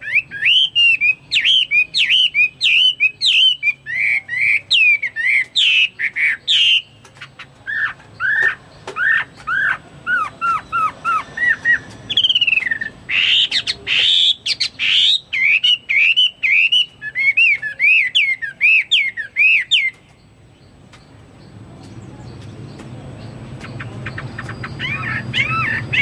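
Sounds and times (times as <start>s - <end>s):
Chinese hwamei whistling song: 0.0s - 6.9s, 7.7s - 20.0s, 24.1s - 26.0s.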